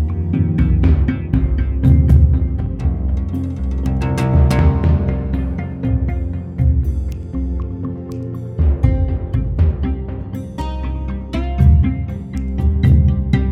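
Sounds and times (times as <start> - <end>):
oud: 0.0 - 13.5.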